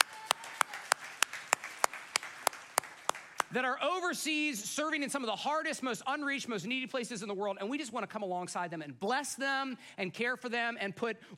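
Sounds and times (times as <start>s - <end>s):
audience clapping: 0.0s - 3.6s
speech: 3.5s - 11.3s.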